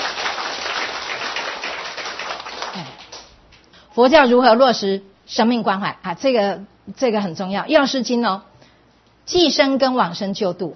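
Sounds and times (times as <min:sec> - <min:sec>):
audience applause: 0:00.0 - 0:03.3
speech: 0:04.0 - 0:08.5, 0:09.3 - 0:10.7.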